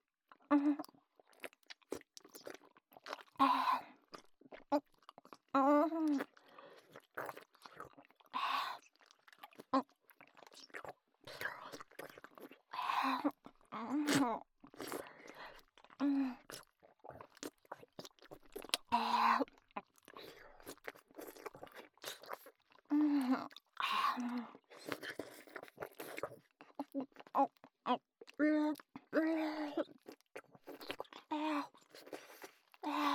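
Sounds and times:
fellatio loop ASMR mouth sounds: 0:00.6 - 0:33.1.

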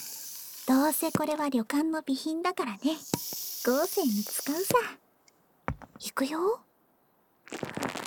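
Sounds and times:
fizzing, crackling soap foam bubbles: 0:00.0 - 0:01.3, 0:02.8 - 0:04.9
speech: 0:00.7 - 0:05.0, 0:06.0 - 0:06.7, 0:07.5 - 0:07.9.

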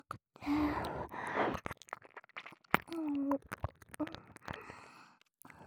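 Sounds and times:
ear licking practice: 0:00.6 - 0:04.8.

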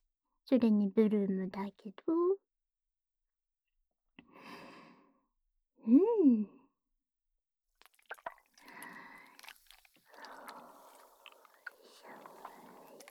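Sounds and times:
speech: 0:00.5 - 0:02.4, 0:05.8 - 0:06.6
squishy slime mixed with shaving foam crackling and fizzing: 0:07.8 - 0:13.0.

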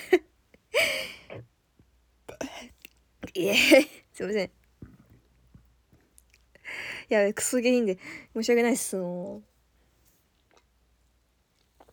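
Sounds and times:
person burping: 0:02.3 - 0:03.9
speech: 0:03.4 - 0:04.6, 0:07.1 - 0:09.5.

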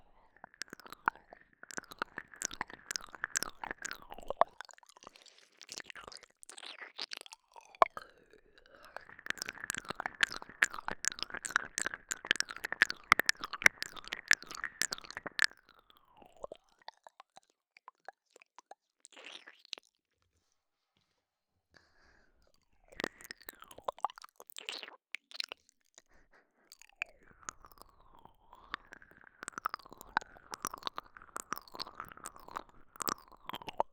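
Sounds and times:
ear licking: 0:00.4 - 0:15.6, 0:22.9 - 0:33.9.

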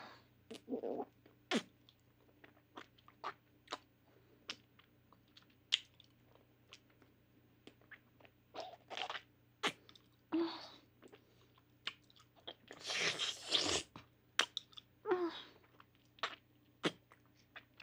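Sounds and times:
ASMR oral sex mouth sounds: 0:00.5 - 0:01.7, 0:07.7 - 0:11.2, 0:11.9 - 0:14.9, 0:15.6 - 0:17.8.

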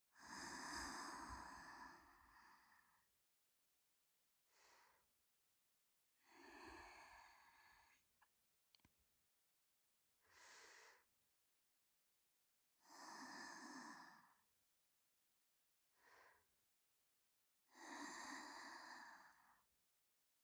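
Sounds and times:
person breathing in sleep in the left channel: 0:00.2 - 0:03.0, 0:06.3 - 0:08.0, 0:10.4 - 0:11.0, 0:12.9 - 0:14.3, 0:17.8 - 0:19.5.

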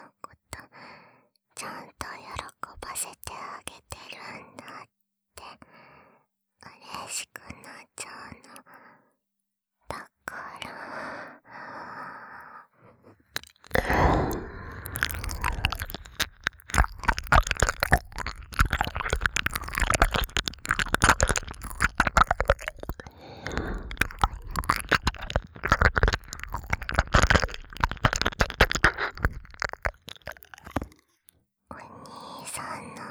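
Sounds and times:
ASMR ear licking sounds: 0:13.7 - 0:31.0.

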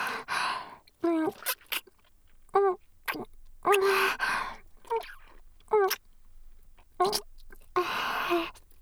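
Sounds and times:
ear licking: 0:00.2 - 0:08.8
kissing: 0:02.6 - 0:04.2, 0:04.9 - 0:06.0.

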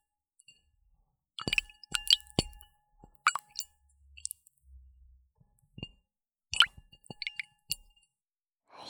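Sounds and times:
water sounds: 0:01.4 - 0:02.6, 0:03.3 - 0:04.4, 0:06.6 - 0:07.5.

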